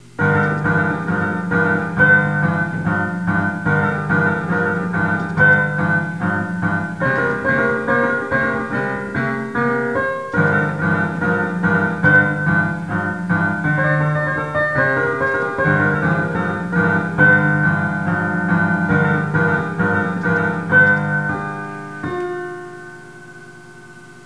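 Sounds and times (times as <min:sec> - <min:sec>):
bittersweet blues music: 0:00.0 - 0:24.2.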